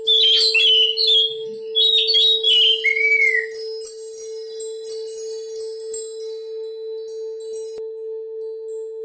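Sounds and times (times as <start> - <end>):
Oriental magpie-robin song: 0.0 - 4.6.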